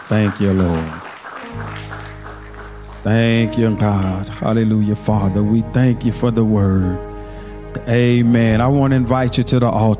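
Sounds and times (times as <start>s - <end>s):
audience hand clapping: 0.0s - 4.1s
speech: 0.1s - 1.9s, 3.0s - 7.1s, 7.7s - 9.9s.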